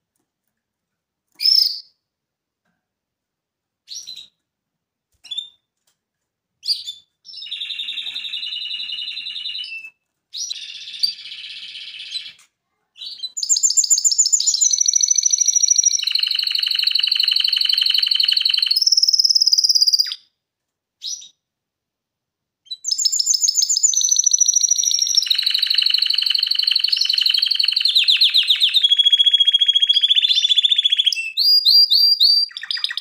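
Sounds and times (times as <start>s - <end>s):
canary singing trills: 1.4s - 2.0s, 6.6s - 12.4s, 13.0s - 20.3s, 22.7s - 32.9s.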